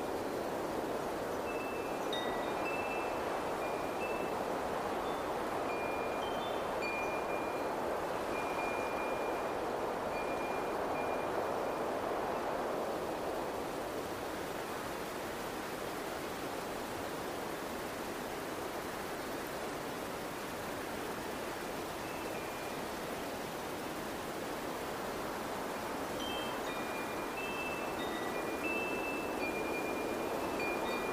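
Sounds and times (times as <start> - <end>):
steady rushing wind: 0.0 - 31.1
wind chimes tinkling: 1.5 - 4.4, 5.0 - 11.4, 26.2 - 31.1.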